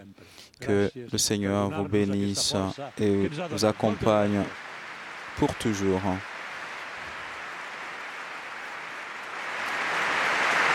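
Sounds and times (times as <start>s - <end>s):
speech: 0.6s - 4.7s, 5.4s - 6.3s
faithful at Eucharist cheering: 2.3s - 10.7s.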